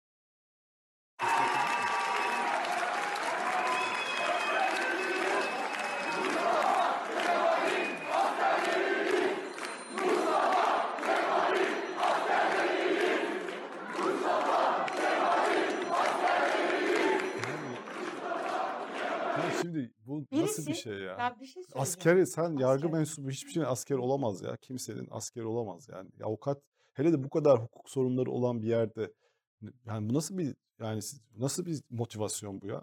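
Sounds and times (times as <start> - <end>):
crowd chanting: 1.2 - 19.6, 20.4 - 23.0
crowd cheering an Istanbul Bar Association election win: 1.2 - 19.6
speech: 20.9 - 32.8.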